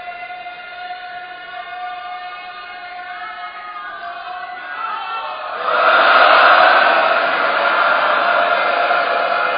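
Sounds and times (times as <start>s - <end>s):
congregation shouting a Sikh jaikara in honour of Bhai Mani Singh: 4.9s - 9.5s.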